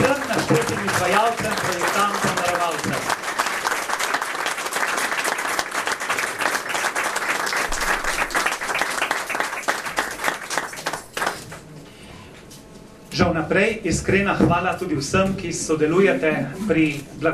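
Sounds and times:
large crowd applauding: 0.0s - 11.6s
speech: 13.5s - 17.3s.

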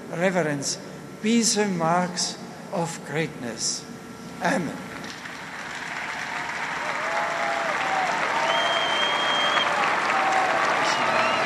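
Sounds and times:
speech: 0.1s - 4.9s
sustained applause from a large audience: 5.2s - 11.4s
faint whistles and cheers: 5.9s - 11.4s.

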